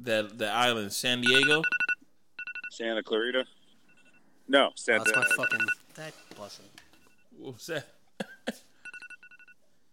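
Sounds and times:
speech: 0:00.0 - 0:01.8, 0:02.7 - 0:03.6, 0:04.5 - 0:06.8, 0:07.4 - 0:08.7
phone alarm beeping: 0:01.2 - 0:02.8, 0:03.6 - 0:04.3, 0:05.0 - 0:06.4, 0:08.8 - 0:09.9.

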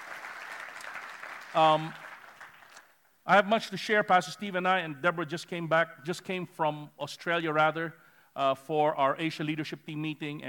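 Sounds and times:
audience applause: 0:00.0 - 0:02.9
speech: 0:01.5 - 0:02.0, 0:03.3 - 0:10.4.

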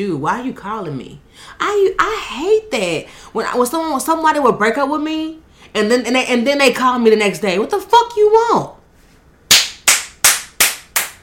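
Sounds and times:
speech: 0:00.0 - 0:08.8
hand clapping: 0:09.5 - 0:11.2.

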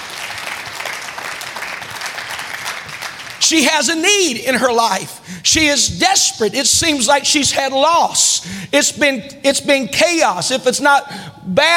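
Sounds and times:
audience clapping: 0:00.0 - 0:03.7
speech: 0:03.4 - 0:11.7.

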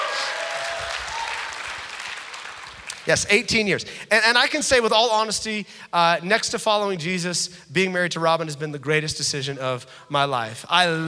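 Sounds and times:
audience applause: 0:00.0 - 0:03.1
speech: 0:03.1 - 0:11.0.

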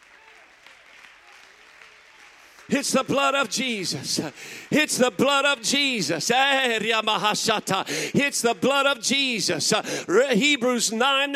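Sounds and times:
crowd clapping: 0:00.0 - 0:07.0
speech: 0:02.7 - 0:11.3.

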